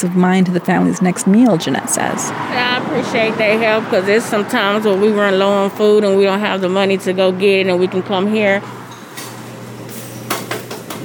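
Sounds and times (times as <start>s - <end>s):
speech: 0.0s - 8.8s
pots and utensils clattering in the kitchen of Nixta taqueria: 8.9s - 11.0s.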